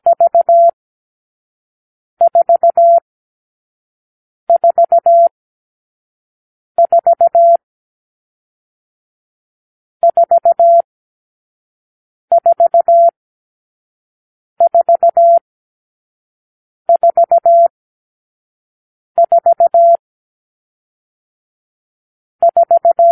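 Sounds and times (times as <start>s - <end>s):
morse code beeps: 0.1s - 0.8s, 2.2s - 3.0s, 4.5s - 5.3s, 6.8s - 7.6s, 10.0s - 10.8s, 12.3s - 13.1s, 14.6s - 15.4s, 16.9s - 17.7s, 19.2s - 20.0s, 22.4s - 23.1s.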